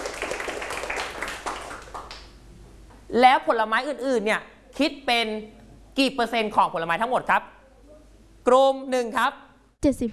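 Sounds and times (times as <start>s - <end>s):
classroom clapping for a group: 0.0s - 2.4s
speech: 3.1s - 7.6s, 8.4s - 10.1s.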